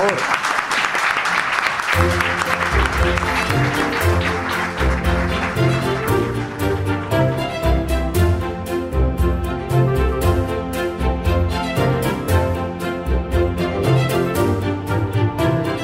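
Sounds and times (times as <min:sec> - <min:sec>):
crowd applauding: 0:00.0 - 0:08.1
music with steady beat: 0:02.0 - 0:15.8.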